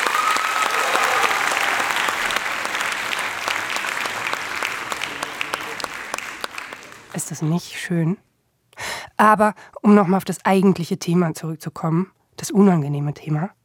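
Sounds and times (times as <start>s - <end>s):
applause: 0.0s - 7.5s
speech: 7.2s - 8.3s, 9.2s - 13.6s.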